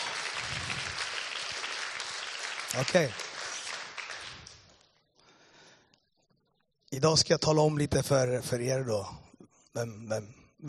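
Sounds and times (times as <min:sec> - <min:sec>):
audience applause: 0:00.0 - 0:04.8
speech: 0:02.7 - 0:03.2, 0:07.0 - 0:09.2, 0:09.8 - 0:10.6.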